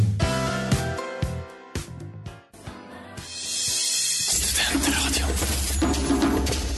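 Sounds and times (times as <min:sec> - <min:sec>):
pop songs played on radio: 0:00.2 - 0:06.6.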